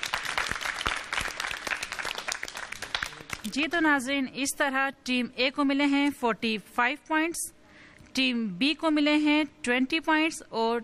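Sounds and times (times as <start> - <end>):
audience applause welcoming Team C: 0.0 - 3.4
speech: 3.4 - 7.6, 8.2 - 10.8.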